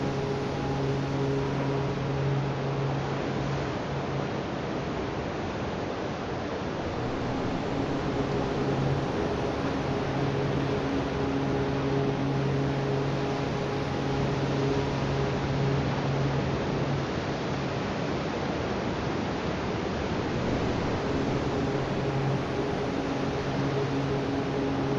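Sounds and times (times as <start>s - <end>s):
om chanting: 0.0s - 4.3s, 6.9s - 17.3s, 20.3s - 24.9s
beach ambience at Linda Mar Beach: 0.0s - 24.9s.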